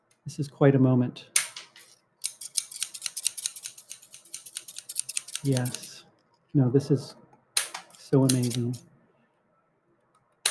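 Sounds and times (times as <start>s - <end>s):
speech: 0.2s - 1.4s, 5.4s - 5.9s, 6.5s - 7.2s, 8.1s - 8.9s
scissors cutting through pieces of plastic: 2.2s - 5.9s, 7.6s - 8.8s.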